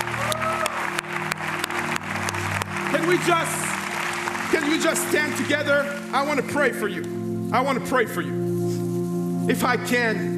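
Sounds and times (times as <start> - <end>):
church congregation clapping: 0.0 - 7.2
speech: 3.1 - 3.6, 4.5 - 8.4, 9.5 - 10.3.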